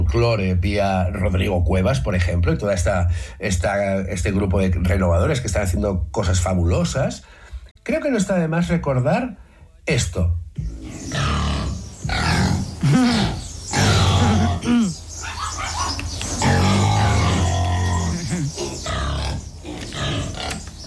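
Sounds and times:
speech: 0.1s - 11.3s
pig grunting: 10.6s - 20.8s.

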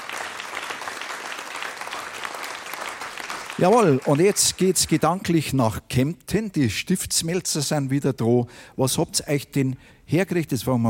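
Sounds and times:
audience applause: 0.0s - 5.0s
speech: 3.6s - 10.8s.

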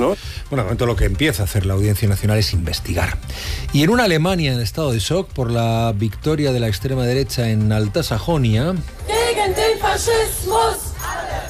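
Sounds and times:
speech: 0.0s - 10.8s
protest crowd chanting against fascism: 9.0s - 11.4s.

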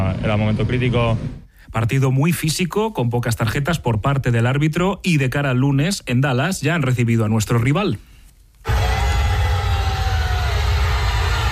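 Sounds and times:
speech: 0.0s - 8.8s
hundreds of fans screaming on arrival of Cristiano Ronaldo: 8.7s - 11.5s.

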